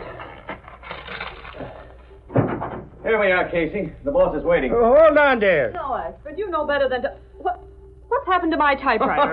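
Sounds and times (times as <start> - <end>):
paper sheet being crumpled: 0.0 - 2.0
speech: 3.1 - 7.2, 8.3 - 9.3.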